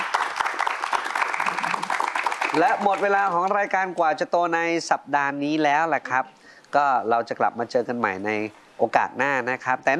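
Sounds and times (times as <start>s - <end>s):
applause for three guests: 0.0s - 3.7s
speech: 2.6s - 9.9s.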